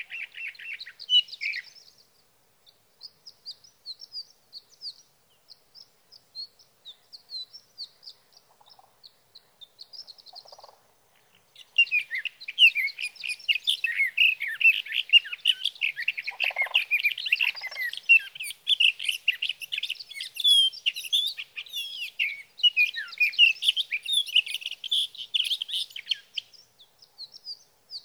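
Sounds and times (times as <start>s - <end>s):
sage thrasher warbling song: 6.9s - 28.0s.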